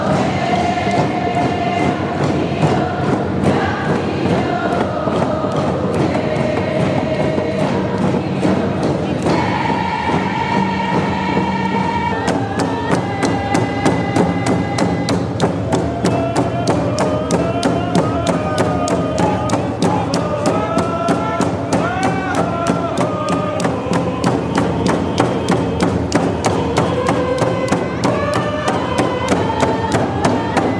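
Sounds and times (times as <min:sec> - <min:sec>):
crowd noise at Waterfront Station in Vancouver, BC: 0:00.0 - 0:30.7
steady round dance drumbeat: 0:00.0 - 0:30.7
voices singing round dance chant lines at an Idle No More demonstration: 0:00.0 - 0:30.7.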